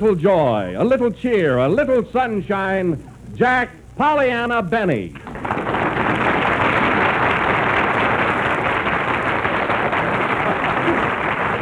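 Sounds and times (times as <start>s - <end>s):
speech: 0.0s - 5.3s
audience applause: 5.2s - 11.5s.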